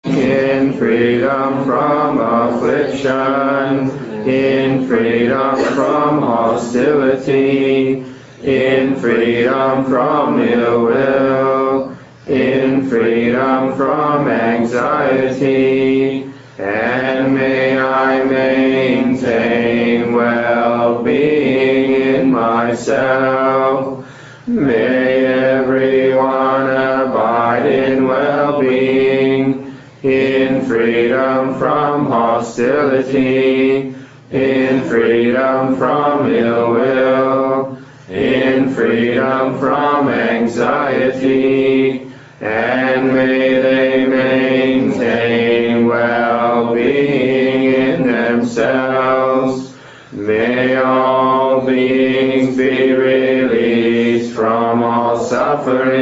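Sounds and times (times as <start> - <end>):
person chanting for well-being in English: 0.0 - 56.0.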